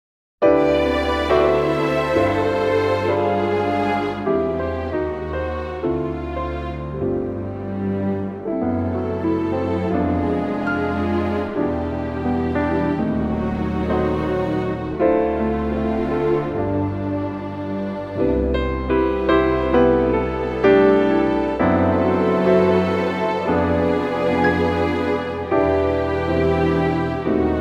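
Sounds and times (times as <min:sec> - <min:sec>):
orchestra playing in C: 0:00.5 - 0:27.5.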